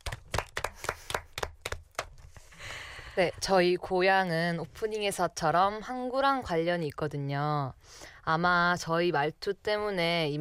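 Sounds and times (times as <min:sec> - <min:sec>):
hand clapping: 0:00.0 - 0:02.2
speech: 0:03.2 - 0:10.4.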